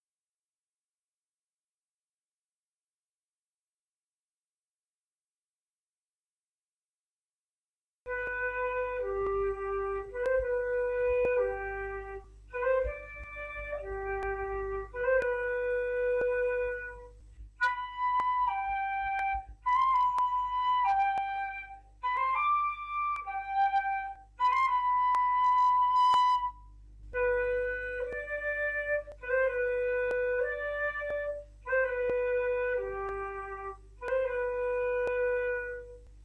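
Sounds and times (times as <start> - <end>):
flute: 8.1 - 36.2.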